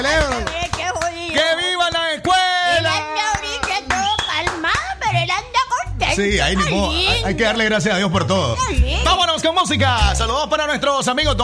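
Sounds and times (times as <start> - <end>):
applause, hands clapping: 0.0 - 5.3
speech: 6.2 - 11.4.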